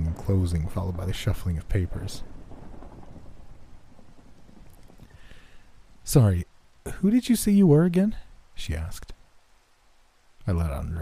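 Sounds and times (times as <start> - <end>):
thunder rumbling: 0.0 - 8.7
steady rain: 0.0 - 10.9
speech: 0.3 - 2.3, 6.1 - 9.2, 10.4 - 10.9.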